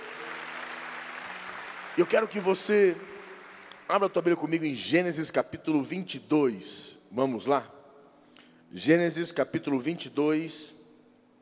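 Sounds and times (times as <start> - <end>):
audience applause: 0.0 - 4.1
speech: 2.0 - 3.1, 3.9 - 7.8, 8.7 - 10.8.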